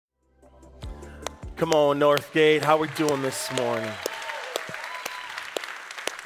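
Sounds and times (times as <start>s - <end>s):
speech: 1.6s - 4.1s
rowdy crowd clapping hard and steadily: 1.6s - 6.2s
scattered cheers and whoops from rowdy crowd: 2.4s - 6.2s.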